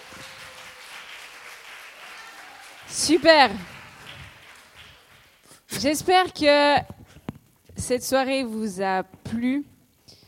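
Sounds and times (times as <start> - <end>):
applause: 0.0 - 5.6
speech: 2.9 - 3.7, 5.8 - 7.0, 7.9 - 9.7.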